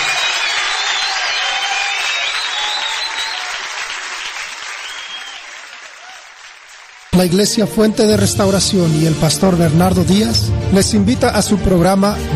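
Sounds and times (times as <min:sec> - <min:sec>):
audience applause: 0:00.0 - 0:07.6
speech: 0:07.2 - 0:12.3.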